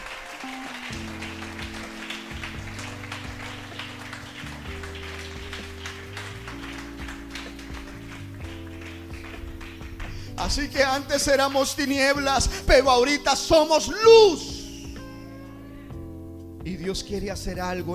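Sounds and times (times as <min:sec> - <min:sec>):
applause: 0:00.0 - 0:11.8
speech: 0:10.4 - 0:14.5, 0:16.8 - 0:17.9.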